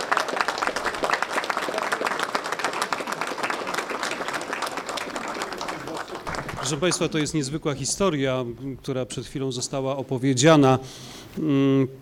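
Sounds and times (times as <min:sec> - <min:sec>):
audience applause: 0:00.0 - 0:07.4
speech: 0:06.7 - 0:12.0.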